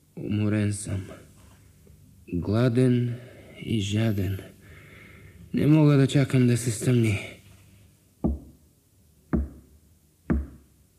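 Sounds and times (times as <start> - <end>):
speech: 0.2 - 1.2, 2.3 - 4.5, 5.5 - 7.3
knocking on a gate: 8.2 - 8.5, 9.4 - 9.6, 10.3 - 10.6.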